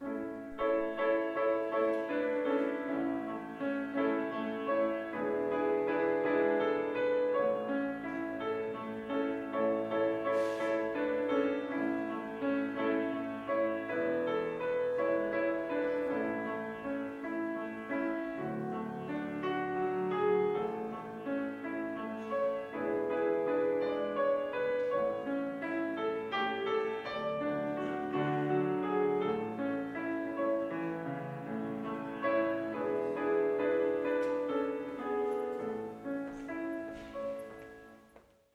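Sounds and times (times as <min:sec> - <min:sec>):
prelude music: 0:00.0 - 0:38.5.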